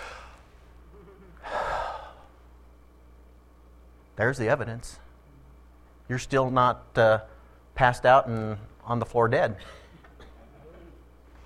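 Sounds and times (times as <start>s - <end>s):
sharp intake of breath: 0.0s - 0.6s, 1.4s - 2.3s
speech: 4.2s - 5.0s, 6.1s - 9.8s.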